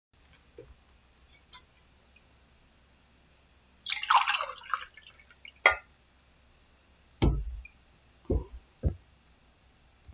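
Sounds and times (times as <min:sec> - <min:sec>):
liquid pouring: 0:03.8 - 0:05.7.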